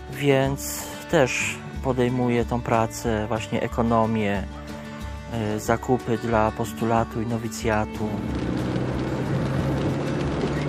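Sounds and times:
speech: 0.1s - 4.6s, 5.3s - 8.6s
car engine and road rumble driving toward Ruhengeri, Rwanda: 7.7s - 10.6s.

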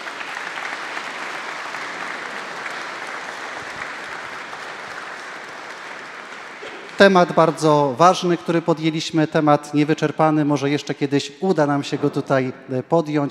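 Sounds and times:
audience applause: 0.0s - 7.7s
speech: 7.0s - 13.2s.

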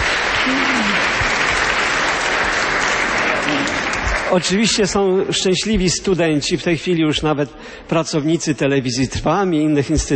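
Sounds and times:
audience applause: 0.0s - 5.1s
speech: 4.3s - 10.1s.

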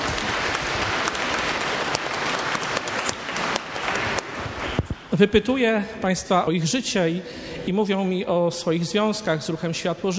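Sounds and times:
audience applause: 0.0s - 5.1s
speech: 5.2s - 10.1s.

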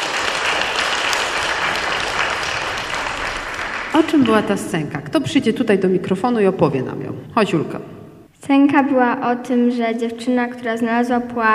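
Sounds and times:
audience applause: 0.0s - 4.8s
speech: 4.0s - 11.5s.

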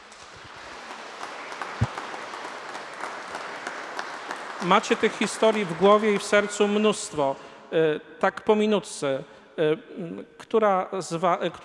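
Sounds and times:
audience applause: 0.2s - 6.2s
speech: 4.6s - 11.6s.

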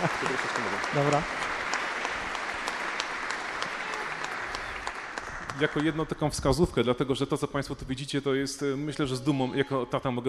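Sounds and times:
speech: 0.0s - 1.5s, 5.6s - 10.2s
crowd applauding: 0.0s - 6.6s.

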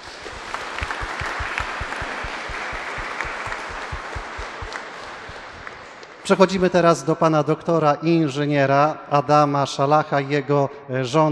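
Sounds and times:
audience applause: 0.0s - 6.2s
speech: 6.3s - 11.3s.

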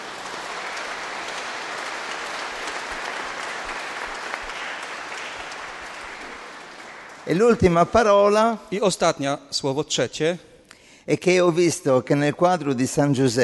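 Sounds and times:
audience applause for the priests: 0.0s - 8.5s
speech: 7.3s - 10.5s, 11.1s - 13.4s.

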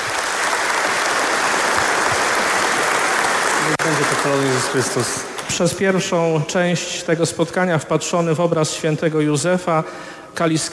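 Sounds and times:
audience applause: 0.0s - 5.4s
speech: 3.9s - 10.7s.

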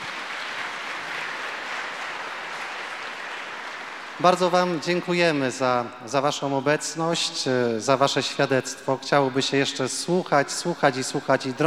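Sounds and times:
audience applause: 0.0s - 4.9s
speech: 4.2s - 11.6s.

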